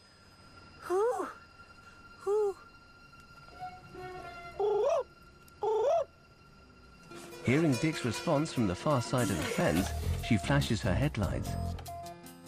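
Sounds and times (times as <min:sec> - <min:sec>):
person imitating an animal call: 0:04.5 - 0:06.1
speech: 0:07.4 - 0:11.8.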